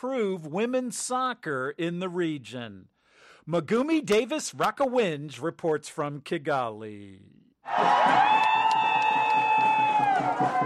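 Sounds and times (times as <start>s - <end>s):
speech: 0.0s - 8.5s
Rwandan soccer fans cheering their team: 7.6s - 10.6s.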